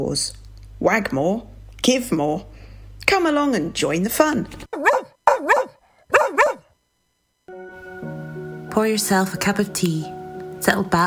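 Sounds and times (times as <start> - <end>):
speech: 0.0 - 5.0, 8.8 - 11.0
dog barking: 4.7 - 6.7
steady tonal musical sound: 7.5 - 11.0.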